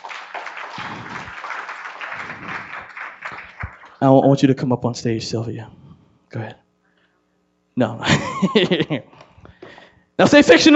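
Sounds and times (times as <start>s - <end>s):
audience applause: 0.0s - 4.0s
speech: 4.0s - 6.6s, 7.8s - 9.1s, 10.2s - 10.7s
laughter: 8.0s - 9.2s.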